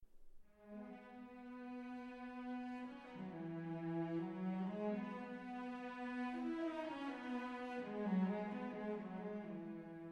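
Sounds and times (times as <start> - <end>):
cello: 0.5 - 10.1.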